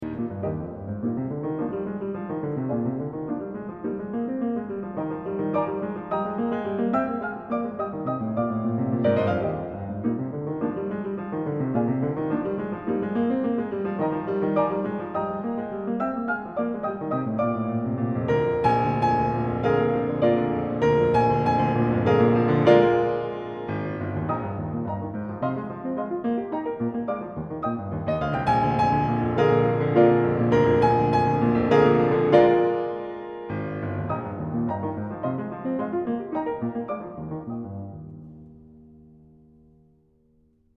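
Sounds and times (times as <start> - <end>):
piano variations and fugue: 0.0 - 40.7.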